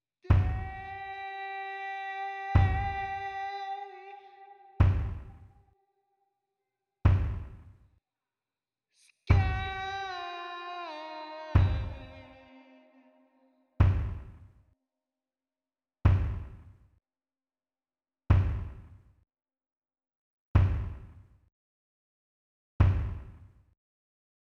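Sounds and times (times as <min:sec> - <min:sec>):
kick drum: 0:00.3 - 0:00.9, 0:02.6 - 0:03.2, 0:04.8 - 0:05.5, 0:07.1 - 0:07.8, 0:09.3 - 0:09.9, 0:11.6 - 0:12.1, 0:13.8 - 0:14.5, 0:16.1 - 0:16.8, 0:18.3 - 0:19.0, 0:20.6 - 0:21.3, 0:22.8 - 0:23.5.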